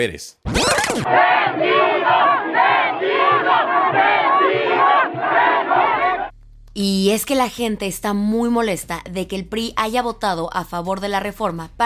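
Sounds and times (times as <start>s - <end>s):
speech: 0.0s - 2.4s, 6.8s - 11.8s
protest march crowd shouting angrily: 1.1s - 6.3s.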